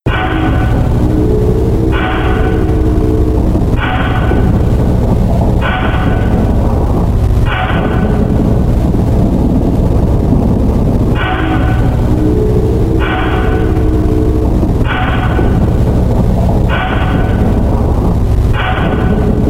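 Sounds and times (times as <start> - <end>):
ambience: 0.0 - 19.4.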